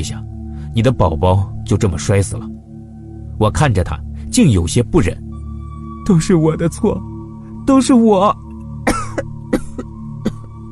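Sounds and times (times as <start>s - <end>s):
speech: 0.0s - 2.6s, 3.4s - 5.3s, 6.1s - 7.1s, 7.7s - 8.4s
person coughing: 8.8s - 10.5s.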